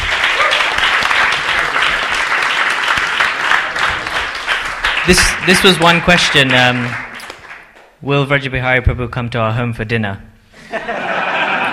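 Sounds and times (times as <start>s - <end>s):
audience applause for a panel: 0.0s - 7.8s
speech: 5.1s - 7.0s, 8.0s - 10.9s
laughter: 10.6s - 11.7s.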